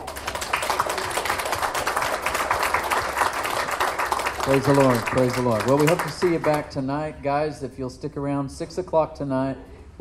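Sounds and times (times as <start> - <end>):
audience applause: 0.0 - 6.7
speech: 4.5 - 9.9.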